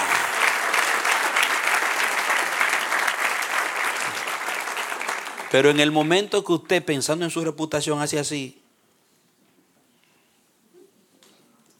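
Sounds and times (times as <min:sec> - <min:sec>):
audience applauding: 0:00.0 - 0:06.4
speech: 0:05.5 - 0:08.6.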